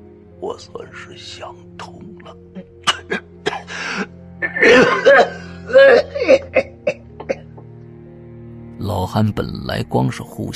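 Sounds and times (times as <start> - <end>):
speech: 0.4 - 2.7, 4.6 - 6.6, 9.1 - 10.5
badly injured man coughing up blood: 2.8 - 7.4.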